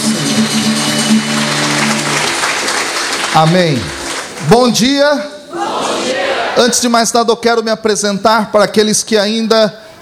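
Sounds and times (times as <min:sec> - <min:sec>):
speech: 0:00.4 - 0:00.8, 0:03.4 - 0:09.8
audience applauding: 0:00.5 - 0:04.9.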